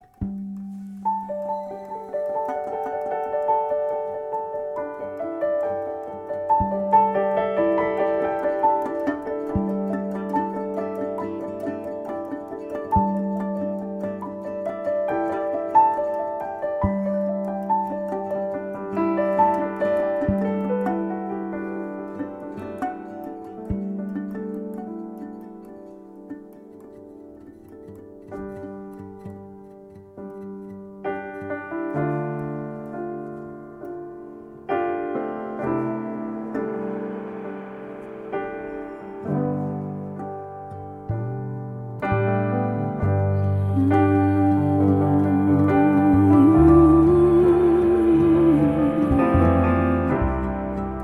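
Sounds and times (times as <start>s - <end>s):
improvised music: 0.0s - 51.0s.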